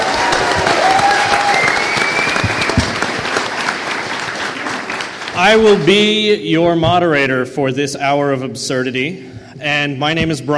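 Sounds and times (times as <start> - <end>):
audience applause: 0.0 - 5.9
speech: 5.4 - 10.5.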